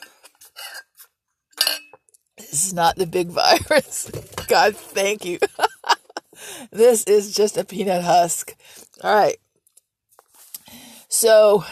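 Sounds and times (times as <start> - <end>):
glass and utensils clinking and knocking: 1.6 - 2.0
speech: 2.5 - 5.6, 6.8 - 9.4, 11.2 - 11.6
laughter: 5.4 - 6.3.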